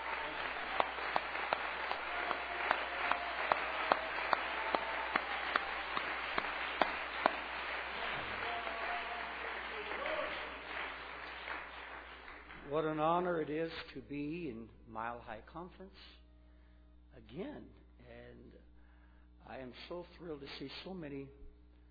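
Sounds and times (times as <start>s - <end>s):
audience clapping hands in praise: 0.0s - 13.3s
speech: 12.8s - 16.2s, 17.3s - 17.8s, 19.5s - 21.4s.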